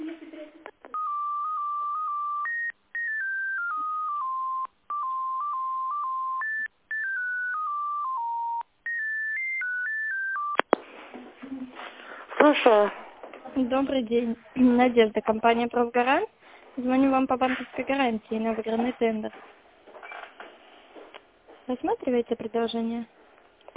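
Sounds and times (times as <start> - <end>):
telephone keypad tones during a call transfer: 0.9 - 10.7
speech: 12.5 - 13.0, 13.6 - 19.5, 21.7 - 23.7.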